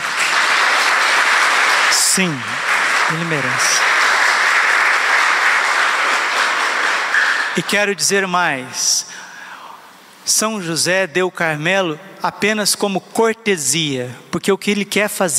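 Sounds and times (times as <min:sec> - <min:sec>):
crowd applauding: 0:00.0 - 0:07.9
speech: 0:02.2 - 0:04.0, 0:07.6 - 0:09.2, 0:10.3 - 0:15.3.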